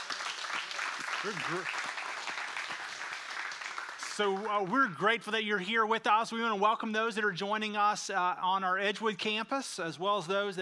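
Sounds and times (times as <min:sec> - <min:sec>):
church congregation applause: 0:00.0 - 0:04.9
speech: 0:01.2 - 0:01.8, 0:04.2 - 0:10.6.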